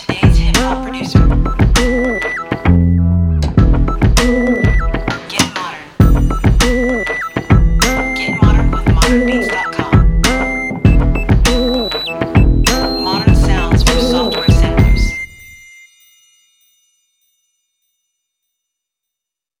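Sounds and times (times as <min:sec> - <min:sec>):
bass: 0:00.0 - 0:05.3, 0:06.0 - 0:15.4.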